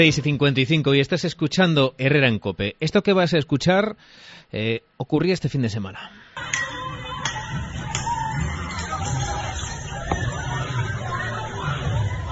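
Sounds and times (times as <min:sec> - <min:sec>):
speech: 0:00.0 - 0:06.7
brief high cries: 0:06.4 - 0:12.3
crowd shouting in a street fight at night: 0:06.4 - 0:12.3.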